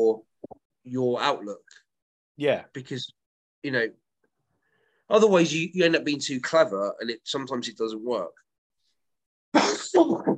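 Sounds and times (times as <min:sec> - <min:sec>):
speech: 0:00.9 - 0:01.8, 0:02.4 - 0:04.0, 0:05.1 - 0:08.4, 0:09.9 - 0:10.3
sneeze: 0:09.6 - 0:10.3.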